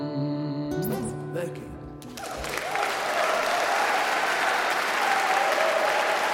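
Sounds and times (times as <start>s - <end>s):
speech: 0.8s - 1.8s
concert crowd applauding: 2.0s - 6.3s.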